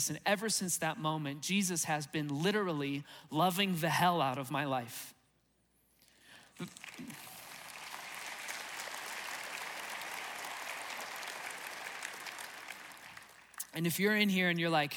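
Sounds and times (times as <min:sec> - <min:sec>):
speech: 0:00.0 - 0:05.2, 0:06.6 - 0:07.3, 0:13.7 - 0:14.9
audience applause: 0:06.5 - 0:13.7.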